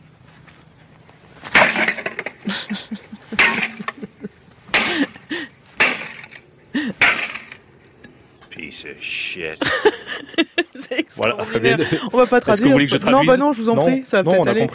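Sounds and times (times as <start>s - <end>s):
coffee machine being smashed with a sledgehammer: 1.5s - 2.4s, 5.8s - 6.4s
speech: 2.4s - 3.7s, 9.0s - 14.7s
laughter: 2.4s - 5.6s, 6.7s - 7.0s, 9.6s - 12.9s.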